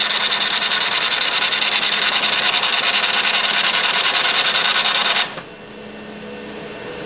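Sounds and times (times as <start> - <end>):
IBM 1403 chain printer printing: 0.0 - 5.5.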